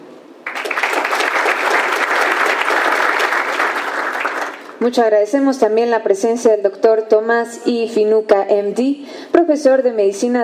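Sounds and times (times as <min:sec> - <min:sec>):
loud audience applause: 0:00.4 - 0:04.8
speech: 0:04.8 - 0:10.4.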